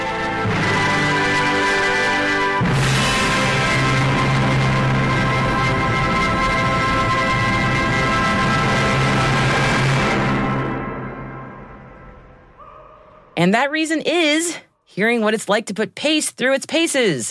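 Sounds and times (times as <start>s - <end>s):
band music blasted in acoustic test chamber: 0.0s - 12.5s
speech: 13.4s - 17.3s.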